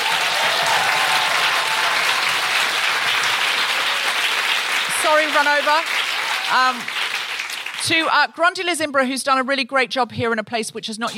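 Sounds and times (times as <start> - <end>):
sustained audience applause: 0.0 - 8.0
speech: 5.2 - 7.0, 7.8 - 11.1.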